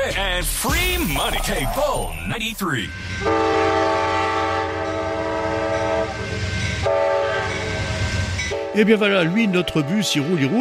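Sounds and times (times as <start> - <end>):
speech: 0.1 - 3.8, 8.8 - 10.5
Amtrak train rumbling past: 0.6 - 10.5
Amtrak train horn blaring: 2.9 - 10.5.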